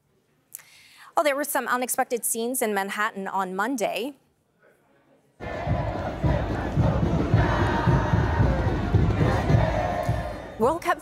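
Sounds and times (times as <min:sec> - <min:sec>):
speech: 0:01.2 - 0:04.2, 0:10.6 - 0:11.0
World Cup football fans cheering in Times Square: 0:05.4 - 0:10.8.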